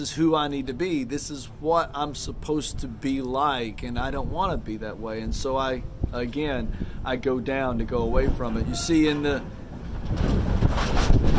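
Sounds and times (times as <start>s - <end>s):
speech: 0.0s - 10.4s
wind of an approaching storm: 0.0s - 11.3s.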